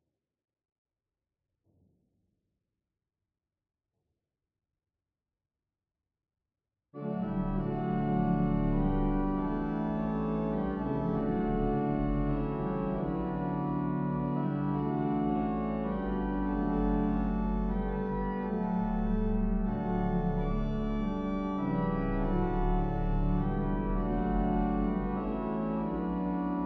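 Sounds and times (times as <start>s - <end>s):
organ: 7.0s - 26.6s.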